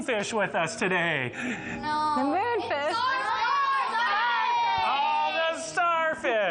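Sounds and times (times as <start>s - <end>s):
speech: 0.0s - 3.2s
rowdy children from a kids camp cheering and shouting at a live event: 2.7s - 6.4s.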